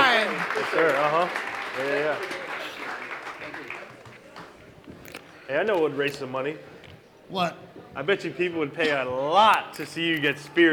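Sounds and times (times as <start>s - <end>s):
audience applause for a veteran: 0.0s - 4.5s
speech: 0.7s - 2.4s, 5.5s - 6.7s, 7.3s - 10.7s.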